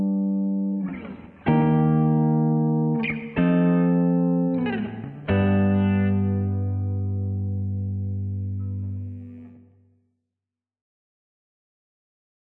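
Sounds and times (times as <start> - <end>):
lounge rhythm guitar: 0.0 - 9.7.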